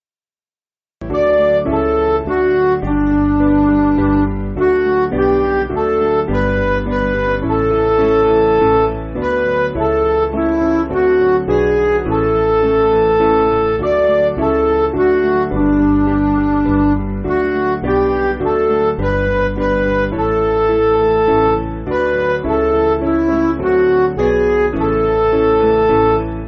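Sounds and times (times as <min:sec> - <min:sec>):
MIDI music: 0:01.0 - 0:26.4.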